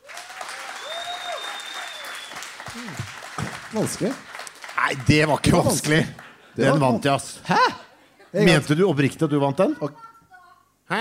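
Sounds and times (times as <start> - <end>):
audience clapping: 0.0 - 6.6
speech: 2.8 - 10.0.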